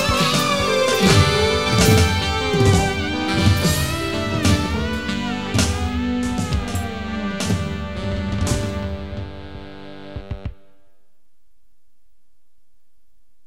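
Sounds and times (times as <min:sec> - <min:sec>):
drums: 0:00.0 - 0:10.7
guitar: 0:00.0 - 0:10.9
saxophone: 0:00.0 - 0:10.9.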